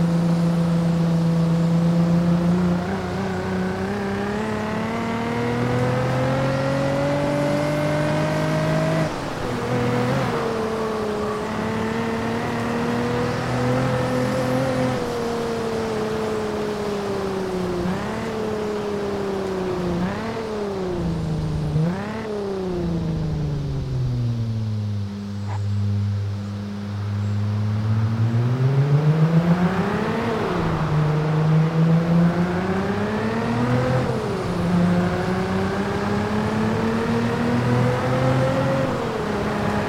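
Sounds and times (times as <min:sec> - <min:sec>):
Nissan 350Z Nismo S-tune engine: 0:00.0 - 0:39.8.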